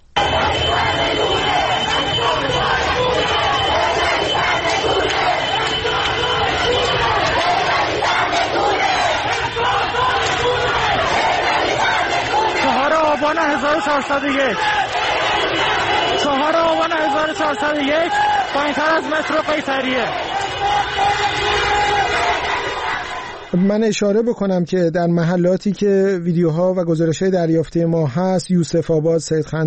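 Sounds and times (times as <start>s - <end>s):
street protest crowd chanting in Shariati neighbourhood of Tehran: 0.2s - 23.6s
speech: 13.3s - 14.8s, 17.2s - 20.2s, 23.6s - 29.6s.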